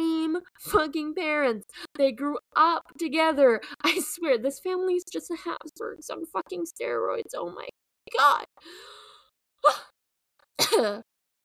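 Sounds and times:
speech: 0.6s - 9.0s, 9.6s - 9.9s, 10.6s - 11.1s
person coughing: 10.6s - 11.0s.

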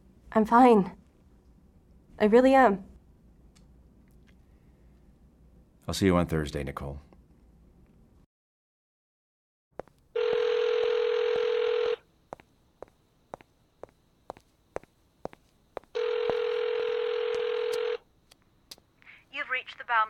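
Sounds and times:
speech: 0.3s - 1.0s, 2.2s - 2.9s, 5.9s - 7.0s
telephone ring tones of unanswered call: 10.2s - 12.0s, 16.0s - 18.0s.

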